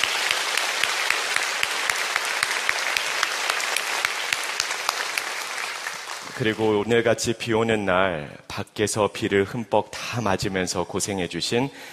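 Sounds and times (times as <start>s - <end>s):
audience applause: 0.0s - 6.8s
speech: 6.4s - 11.9s.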